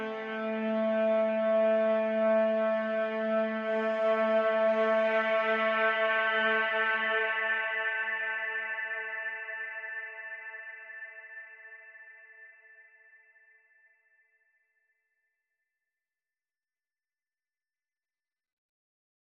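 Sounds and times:
cello: 0.0s - 10.2s.

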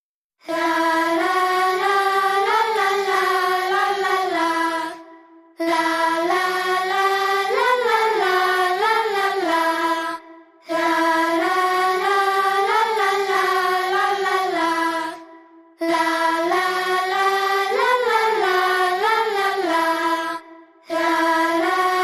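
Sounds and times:
sped-up choir: 0.4s - 22.0s.

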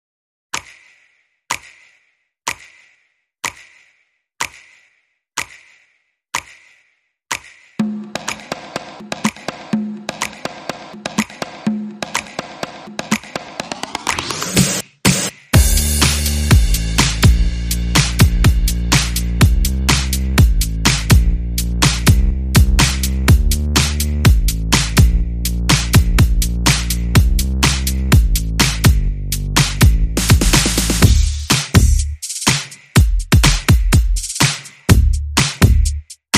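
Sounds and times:
rhythm: 7.3s - 36.3s.

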